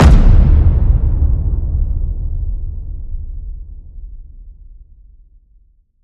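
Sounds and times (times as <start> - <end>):
titan step hit: 0.0 - 4.2.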